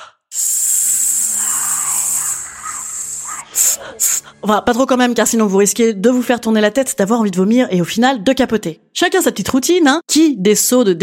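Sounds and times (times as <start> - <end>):
forceful hissing exhale through the lips as a breathing exercise: 0.0 - 4.4
speech: 3.8 - 11.0.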